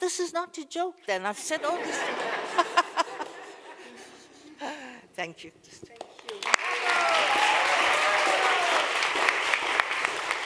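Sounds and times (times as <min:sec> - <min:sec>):
speech: 0:00.1 - 0:02.9, 0:05.2 - 0:06.6
laughter: 0:01.5 - 0:04.8
applause in Nuremberg: 0:05.9 - 0:10.4.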